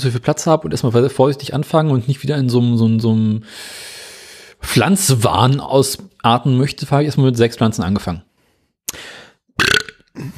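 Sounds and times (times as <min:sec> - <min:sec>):
speech: 0:00.0 - 0:04.0, 0:04.6 - 0:08.3
loud throaty burps: 0:09.6 - 0:10.3
trailing vocal grunt: 0:09.6 - 0:10.3.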